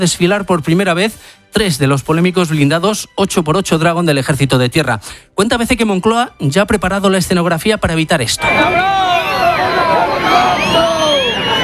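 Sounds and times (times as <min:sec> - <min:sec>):
speech: 0:00.0 - 0:10.9
crowd booing at a military parade: 0:08.4 - 0:11.6.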